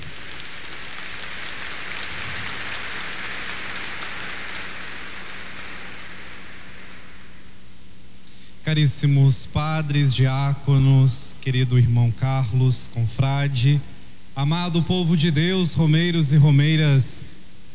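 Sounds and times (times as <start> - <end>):
applause: 0.0 - 7.6
speech: 8.8 - 17.7.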